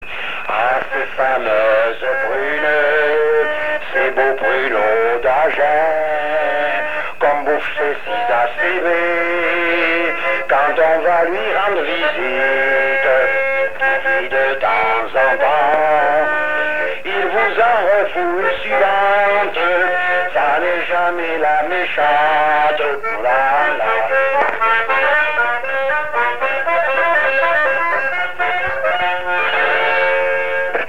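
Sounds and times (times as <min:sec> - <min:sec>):
person singing: 0:00.1 - 0:30.8.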